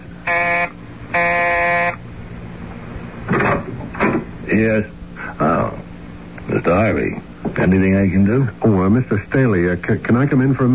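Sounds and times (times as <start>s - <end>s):
doorbell buzzer ringing: 0.2s - 2.0s
speech: 4.5s - 5.5s, 6.6s - 10.7s.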